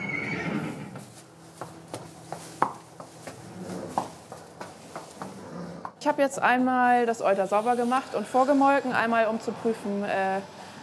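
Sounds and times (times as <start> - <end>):
horse whinnying: 0.0 - 1.0
hoof knocks and thuds: 0.9 - 6.0
speech: 6.0 - 10.6.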